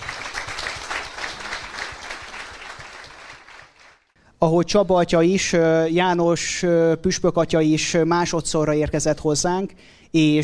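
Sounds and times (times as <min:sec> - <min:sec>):
audience applause: 0:00.0 - 0:04.1
speech: 0:04.4 - 0:10.4.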